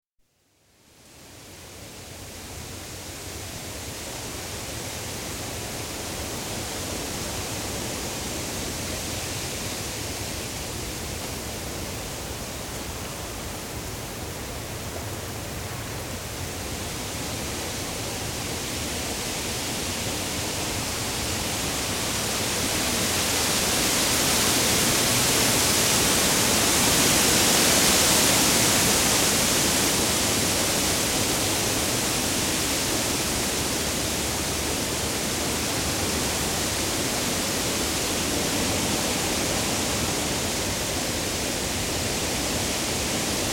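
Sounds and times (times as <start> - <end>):
wind in mixed deciduous woodland: 0.3 - 43.5.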